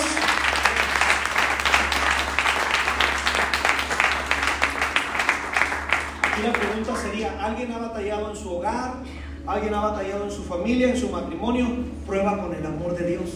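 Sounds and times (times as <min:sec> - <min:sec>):
audience applause: 0:00.0 - 0:07.3
low hum: 0:00.0 - 0:13.3
speech: 0:06.4 - 0:13.3.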